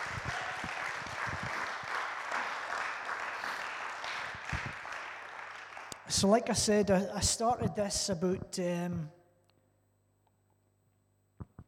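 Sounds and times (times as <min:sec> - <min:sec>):
audience applause: 0:00.0 - 0:06.1
speech: 0:06.1 - 0:09.2.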